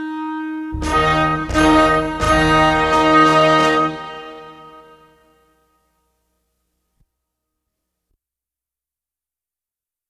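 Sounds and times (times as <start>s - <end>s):
clarinet playing a caprice: 0.0s - 5.9s.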